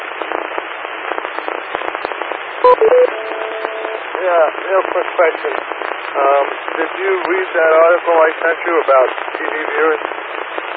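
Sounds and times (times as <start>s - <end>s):
radio static: 0.3s - 10.7s
speech: 2.6s - 3.2s, 4.2s - 10.2s
radio electronic beeps: 2.6s - 4.0s.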